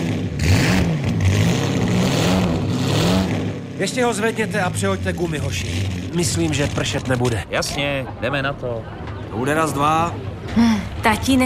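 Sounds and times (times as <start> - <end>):
car engine revving when accelerator pressed: 0.0 - 7.6
speech: 3.8 - 11.4.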